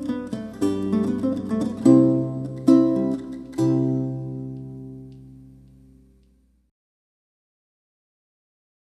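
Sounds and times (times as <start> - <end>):
lute playing: 0.0 - 6.2.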